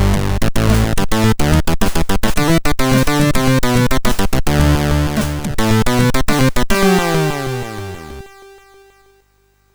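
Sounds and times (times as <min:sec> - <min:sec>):
chiptune music on a MOS6581R3 SID chip: 0:00.0 - 0:09.0.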